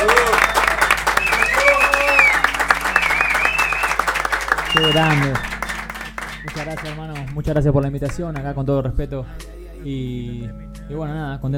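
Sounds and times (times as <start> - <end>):
audience applause: 0.0 - 7.5
speech: 4.8 - 5.5, 6.6 - 11.5.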